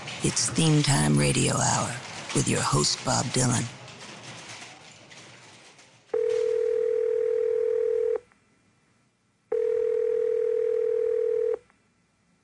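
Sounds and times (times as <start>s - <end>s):
speech: 0.2s - 3.8s
telephone dial tone: 6.2s - 8.2s, 9.5s - 11.6s.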